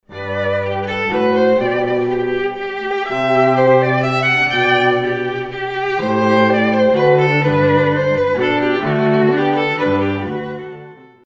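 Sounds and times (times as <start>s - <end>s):
minuet: 0.1s - 11.2s.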